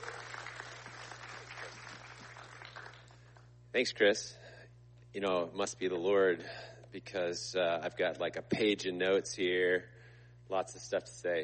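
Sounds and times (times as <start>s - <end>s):
audience applause: 0.0s - 3.4s
speech: 3.8s - 4.4s, 5.2s - 9.9s, 10.5s - 11.4s.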